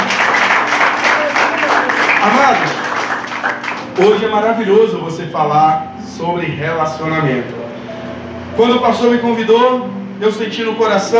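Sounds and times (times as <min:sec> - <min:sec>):
applause: 0:00.0 - 0:04.3
speech: 0:02.2 - 0:02.8, 0:04.0 - 0:07.6, 0:08.6 - 0:11.1.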